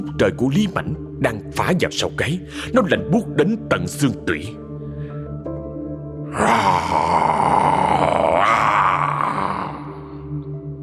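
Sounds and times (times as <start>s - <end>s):
speech: 0.0s - 4.6s
creature growling angrily: 6.3s - 10.0s.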